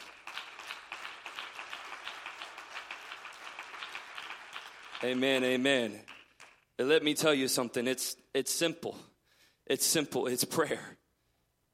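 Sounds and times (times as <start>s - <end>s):
audience clapping hands: 0.0s - 7.2s
speech: 5.0s - 6.1s, 6.8s - 9.1s, 9.7s - 11.0s.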